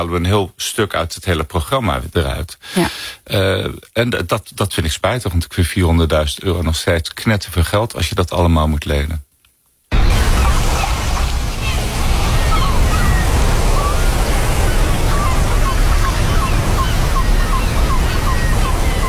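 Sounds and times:
speech: 0.0 - 9.3
beach waves and surf: 9.9 - 19.0.

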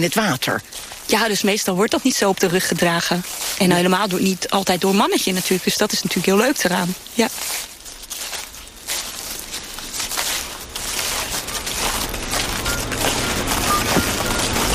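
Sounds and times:
speech: 0.0 - 7.7
dense chorus of frogs or toads calling: 11.0 - 14.7.

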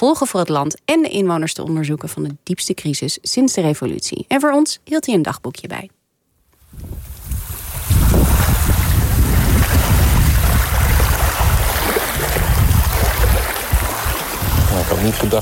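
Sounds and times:
speech: 0.0 - 6.0, 15.0 - 15.3
wind buffeting the microphone: 6.6 - 15.3
sea water waves at Guantanamo Bay: 6.8 - 15.3.

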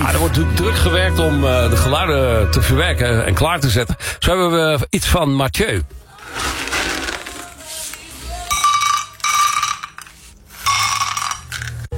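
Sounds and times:
speech: 0.2 - 6.6
dry kibble pouring into metal dog bowls: 6.2 - 11.8.

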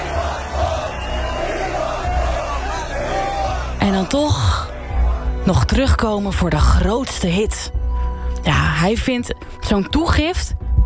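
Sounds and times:
concert crowd shouting and cheering: 0.0 - 3.8, 4.7 - 5.4
speech: 3.8 - 4.6, 5.4 - 7.8, 8.4 - 10.6.

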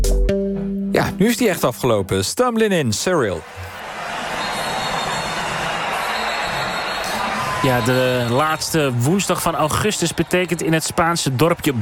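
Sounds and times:
speech: 0.3 - 3.7, 7.6 - 11.8
large crowd roaring at a tomato-throwing street festival: 3.4 - 11.8.

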